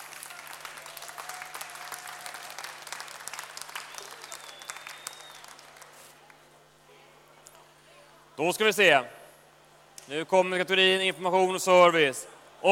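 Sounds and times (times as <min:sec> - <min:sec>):
audience applause: 0:00.0 - 0:06.3
speech: 0:08.4 - 0:09.2, 0:10.1 - 0:12.6.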